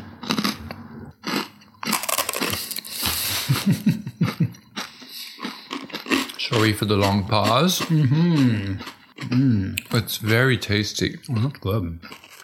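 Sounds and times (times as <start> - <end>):
person biting and chewing a crouton: 0.2 - 3.2, 4.8 - 9.9, 11.3 - 12.4
laughter: 3.2 - 4.6, 7.8 - 8.8
speech: 3.7 - 4.0, 6.6 - 12.2.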